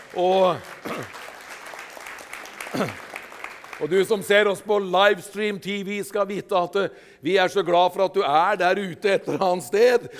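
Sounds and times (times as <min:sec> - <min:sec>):
church audience applauding: 0:00.0 - 0:04.8
speech: 0:00.1 - 0:01.2, 0:02.7 - 0:03.0, 0:03.8 - 0:10.1.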